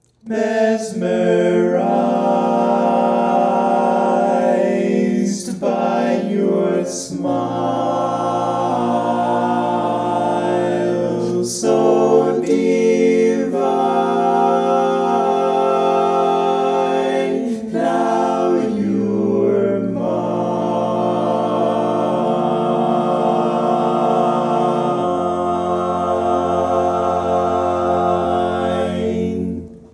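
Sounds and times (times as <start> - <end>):
barbershop lead singing: 0.2 - 29.7.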